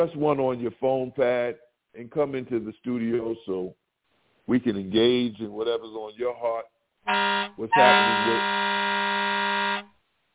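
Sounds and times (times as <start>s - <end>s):
speech: 0.0s - 3.8s, 4.5s - 9.5s
air horn blast: 7.1s - 9.9s.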